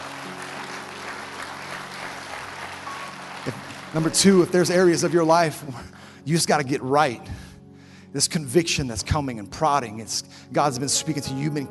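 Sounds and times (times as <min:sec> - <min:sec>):
audience applause: 0:00.0 - 0:05.7
speech: 0:03.4 - 0:07.4, 0:08.1 - 0:11.6.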